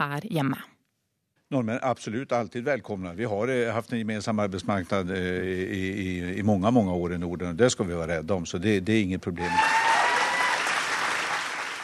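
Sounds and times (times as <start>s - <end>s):
speech: 0.0s - 0.8s, 1.5s - 9.8s
crowd applauding: 9.4s - 11.8s.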